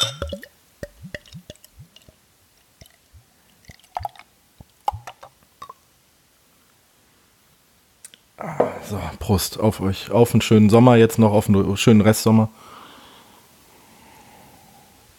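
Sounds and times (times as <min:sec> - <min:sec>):
craft beer pouring into a glass: 0:00.0 - 0:04.3
speech: 0:08.4 - 0:12.7.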